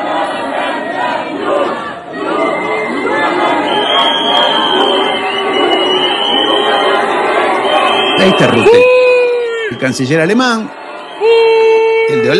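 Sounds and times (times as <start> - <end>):
crowd booing: 0.0 - 12.3
speech: 8.2 - 8.9, 9.8 - 11.4, 12.1 - 12.3.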